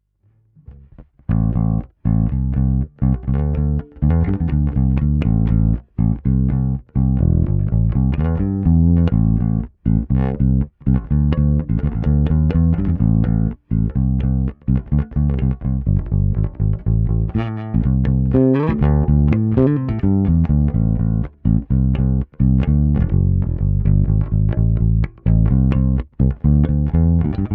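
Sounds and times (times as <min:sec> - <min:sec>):
Ampeg PF-50T P bass played fingerstyle: 0:00.2 - 0:27.5.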